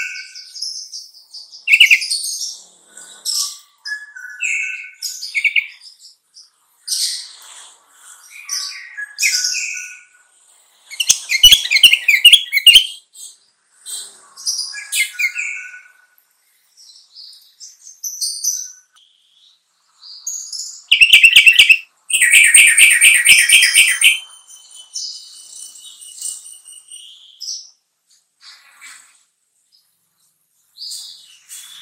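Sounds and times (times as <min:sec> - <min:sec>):
Sooty-headed bulbul song with whistles and chirps: 0:00.0 - 0:02.6, 0:03.3 - 0:06.2, 0:08.2 - 0:10.2, 0:10.9 - 0:13.4, 0:14.4 - 0:16.1, 0:16.8 - 0:27.8, 0:30.8 - 0:31.7.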